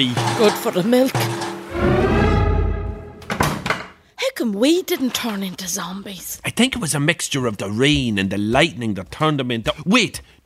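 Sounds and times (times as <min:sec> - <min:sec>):
speech: 0:00.0 - 0:02.0, 0:04.5 - 0:10.4
barn door slammed shut: 0:03.2 - 0:03.8.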